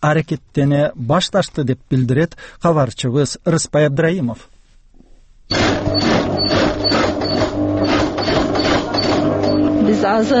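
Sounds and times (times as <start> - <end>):
speech: 0.0 - 4.5, 9.9 - 10.3
sewing machine stitching trousers in Suzak: 5.5 - 10.3.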